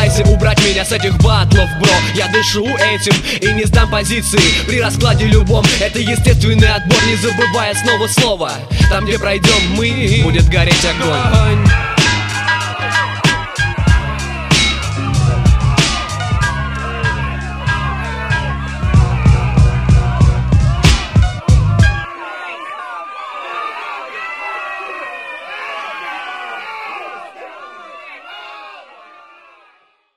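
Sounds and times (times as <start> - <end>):
street rap battle: 0.0 - 23.1
laughter: 8.8 - 28.8.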